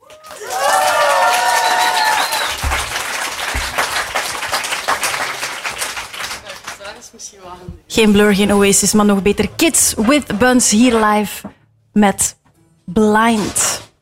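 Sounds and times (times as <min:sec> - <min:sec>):
audience shrill cheers and whistles: 0:00.0 - 0:02.9
concert audience applause in Leuven: 0:00.0 - 0:07.1
speech: 0:08.0 - 0:13.8.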